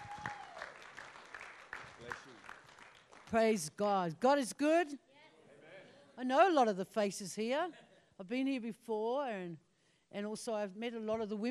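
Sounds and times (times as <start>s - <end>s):
audience applause at a church event welcoming a woman pastor: 0.0s - 3.4s
speech: 3.3s - 5.0s, 6.2s - 11.5s.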